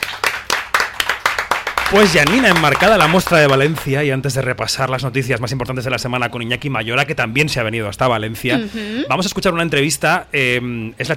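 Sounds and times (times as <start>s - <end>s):
audience applause: 0.0s - 3.8s
speech: 1.9s - 11.1s.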